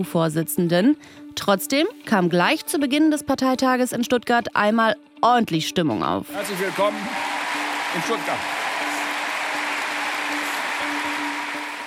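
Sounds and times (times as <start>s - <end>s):
speech: 0.0s - 7.3s, 7.9s - 8.6s
applause at party convention: 6.4s - 11.8s.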